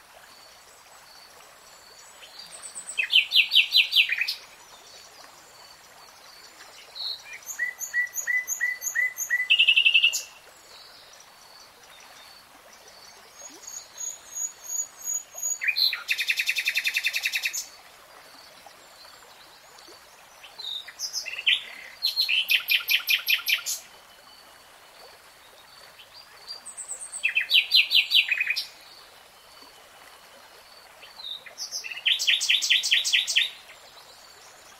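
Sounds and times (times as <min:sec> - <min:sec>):
Nightingale song: 0:01.8 - 0:05.2, 0:06.4 - 0:12.2, 0:13.4 - 0:17.7, 0:20.4 - 0:24.3, 0:26.0 - 0:28.8, 0:31.0 - 0:34.7.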